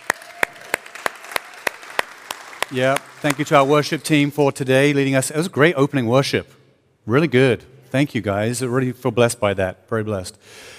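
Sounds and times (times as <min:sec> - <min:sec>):
hand claps in unison during a church service: 0:00.0 - 0:04.1
speech: 0:02.7 - 0:10.7.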